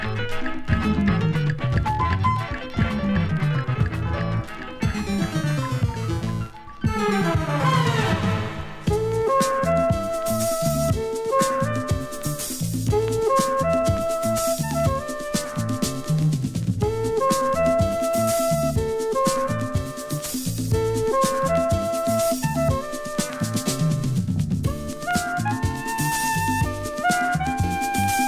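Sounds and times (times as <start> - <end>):
Afro Cuban funky grooves: 0.1 - 28.2.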